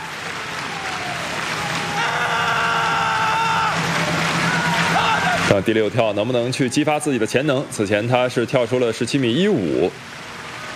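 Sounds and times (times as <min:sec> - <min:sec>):
stadium crowd rhythmic clapping: 0:00.0 - 0:06.4
sustained tonal drone: 0:00.6 - 0:07.9
speech: 0:05.5 - 0:10.2.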